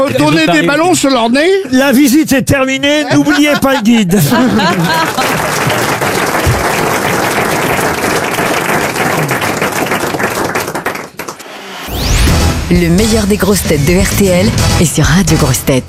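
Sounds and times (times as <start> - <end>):
laughter: 0.0 - 1.2, 2.9 - 6.9
speech: 0.0 - 5.8, 12.7 - 15.8
audience applause: 4.4 - 11.5.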